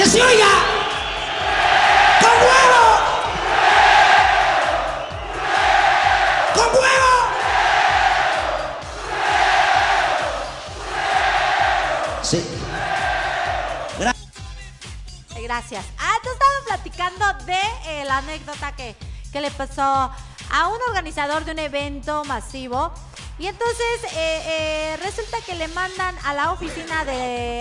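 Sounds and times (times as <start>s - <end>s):
audience chanting European-style football chants: 0.0s - 14.1s
speech: 0.2s - 0.8s, 15.7s - 27.5s
rhythmic low thumping beat: 0.6s - 14.1s.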